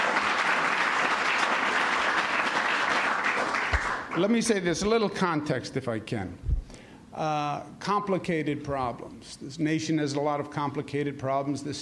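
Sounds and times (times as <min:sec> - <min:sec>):
audience applause: 0:00.0 - 0:04.4
speech: 0:04.2 - 0:06.5, 0:07.2 - 0:11.8.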